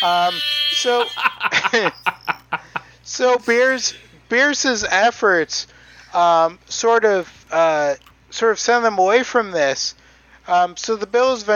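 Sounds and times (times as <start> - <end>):
voice imitating a Jamaican air horn: 0.0 - 1.4, 3.2 - 4.2
speech: 0.0 - 2.1, 3.1 - 11.5
chuckling laughter: 0.0 - 4.3.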